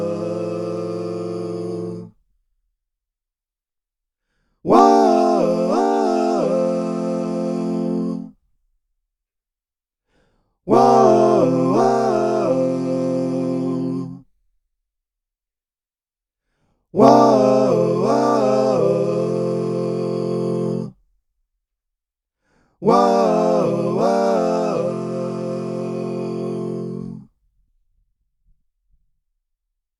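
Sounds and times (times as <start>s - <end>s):
Zoom V6 vocal processor harmony effect: 0.0s - 2.1s, 4.7s - 8.4s, 10.7s - 14.2s, 17.0s - 21.0s, 22.8s - 27.3s.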